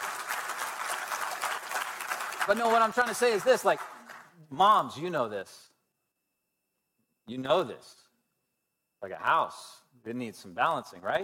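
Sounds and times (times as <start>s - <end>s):
audience applause: 0.0s - 4.3s
speech: 2.4s - 3.9s, 4.5s - 5.7s, 7.3s - 8.0s, 9.0s - 11.2s.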